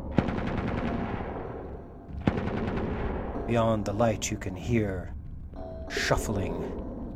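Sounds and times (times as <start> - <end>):
machine gun firing a sustained burst: 0.1 - 1.5, 2.2 - 3.2
speech: 3.5 - 5.1, 5.9 - 6.9.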